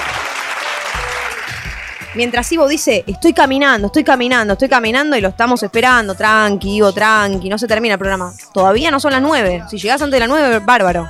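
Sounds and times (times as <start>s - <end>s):
laughter: 0.0s - 2.0s
applause: 0.0s - 2.5s
speech: 2.1s - 11.0s.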